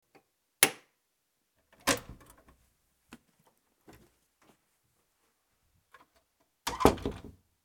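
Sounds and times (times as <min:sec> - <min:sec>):
door: 0:06.7 - 0:07.3.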